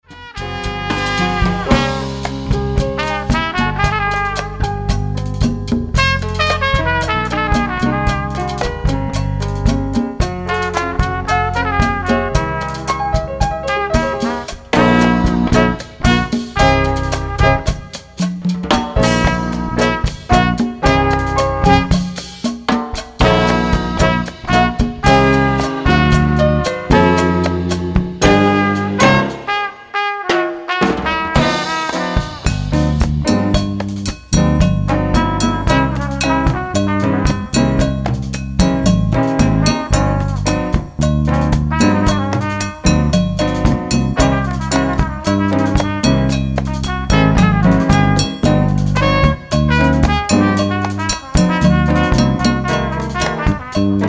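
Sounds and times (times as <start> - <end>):
jazz music: 0.0 - 54.0.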